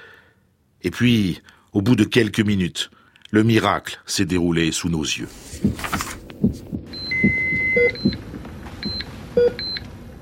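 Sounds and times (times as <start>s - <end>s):
speech: 0.8s - 6.6s
thumping heartbeat: 5.3s - 9.0s
electrocardiogram monitor beeping: 5.5s - 9.9s.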